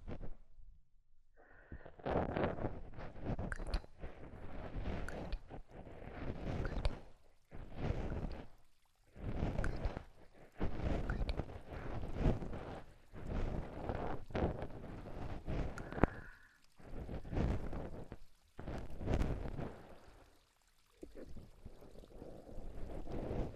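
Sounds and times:
ASMR ear cleaning without background music: 1.9s - 19.7s.

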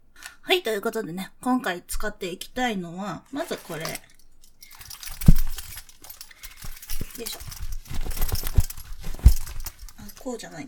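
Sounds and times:
speech: 0.6s - 4.1s, 7.2s - 7.6s, 10.2s - 10.6s
metal buckles on a restraint belt jingling: 3.3s - 10.6s.

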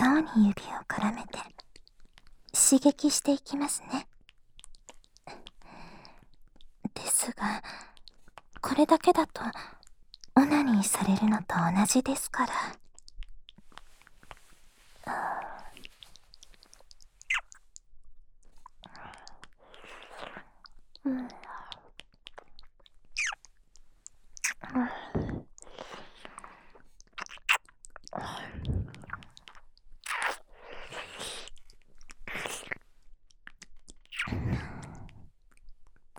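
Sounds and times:
speech: 0.2s - 1.5s, 2.7s - 4.1s, 7.0s - 7.8s, 8.6s - 9.8s, 10.4s - 12.8s
wet ear-licking and mouth sounds in ASMR style: 1.5s - 2.5s, 4.0s - 6.8s, 7.6s - 8.6s, 12.6s - 15.0s, 15.6s - 36.1s.

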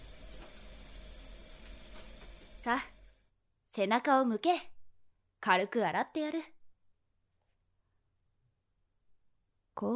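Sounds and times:
shower running at a comfortable temperature: 0.0s - 3.3s
speech: 2.6s - 3.0s, 3.8s - 4.7s, 5.4s - 6.6s.

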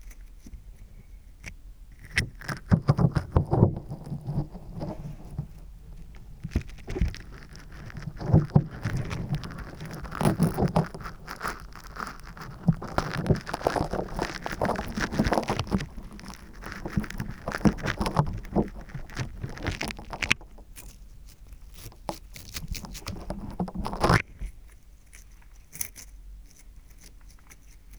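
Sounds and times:
slime squishing in both ears: 2.4s - 24.3s.

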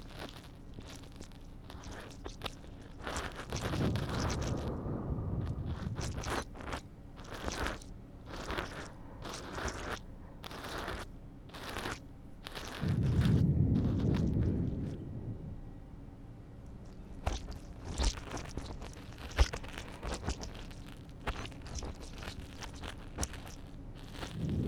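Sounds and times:
left ear cleaning in a driver's lounge: 0.0s - 15.0s, 17.2s - 24.6s
water sounds in a driver's lounge: 1.8s - 11.0s, 11.6s - 20.8s, 24.1s - 24.6s.

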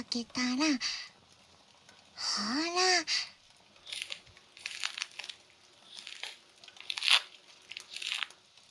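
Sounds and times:
speech: 0.1s - 1.1s, 2.3s - 3.3s
skin being peeled off a mandarin orange: 3.8s - 8.6s.

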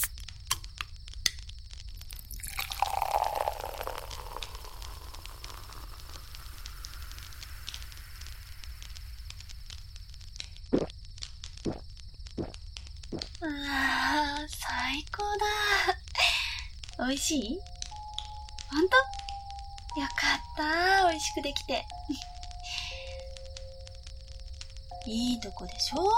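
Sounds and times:
low crackle: 0.0s - 26.1s
drink pouring into a paper cup: 2.1s - 6.2s
speech: 17.0s - 17.7s, 20.0s - 22.3s, 25.0s - 26.1s.

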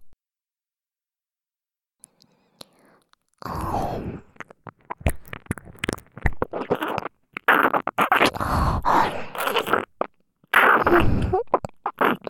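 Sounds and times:
ear licking: 3.0s - 12.2s.

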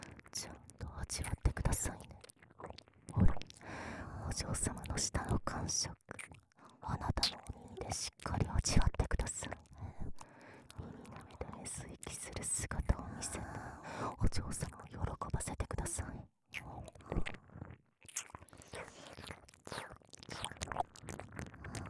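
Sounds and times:
whispering: 0.1s - 2.3s, 4.0s - 17.4s, 18.7s - 20.6s
ear licking sounds: 16.6s - 21.8s.

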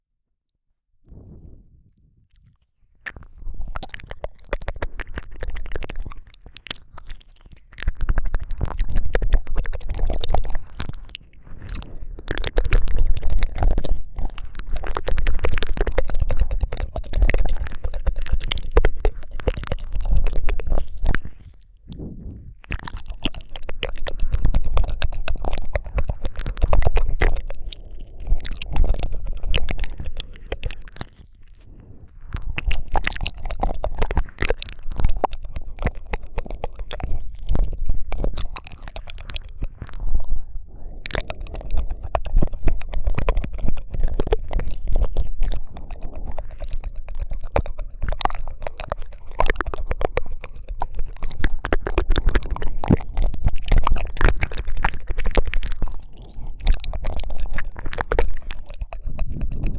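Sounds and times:
ear licking on both ears: 1.1s - 59.7s.

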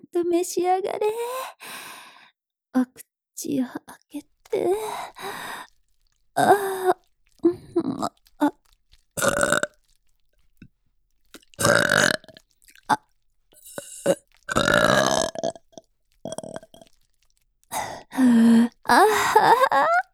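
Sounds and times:
speech: 0.1s - 1.9s, 2.8s - 5.7s, 6.4s - 8.6s
burping after drinking milk: 4.4s - 20.1s.

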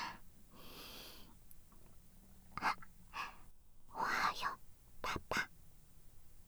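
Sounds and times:
person whispering: 2.6s - 5.5s.

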